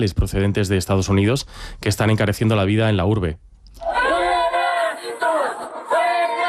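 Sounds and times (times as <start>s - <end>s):
speech: 0.0s - 3.5s
protest crowd chanting: 3.8s - 6.4s.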